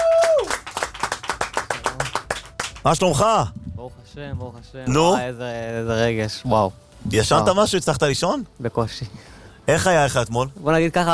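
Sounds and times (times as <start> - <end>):
studio audience clapping for a contest winner: 0.0 - 3.0
speech: 2.8 - 11.1.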